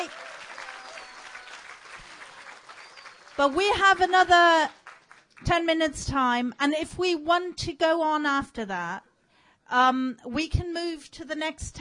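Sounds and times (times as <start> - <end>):
audience applause in a tent at an event: 0.0 - 5.4
speech: 3.4 - 4.8, 5.5 - 9.1, 9.7 - 11.7.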